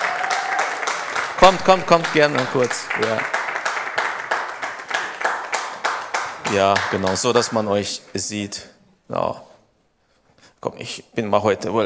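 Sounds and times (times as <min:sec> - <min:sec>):
crowd applauding: 0:00.0 - 0:07.8
speech: 0:01.4 - 0:03.4, 0:06.5 - 0:09.5, 0:10.6 - 0:11.8.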